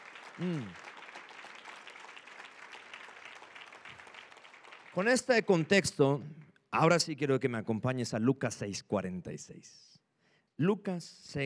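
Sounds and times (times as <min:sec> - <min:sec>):
audience applause: 0:00.0 - 0:05.8
speech: 0:00.4 - 0:00.8, 0:05.0 - 0:09.9, 0:10.6 - 0:11.4.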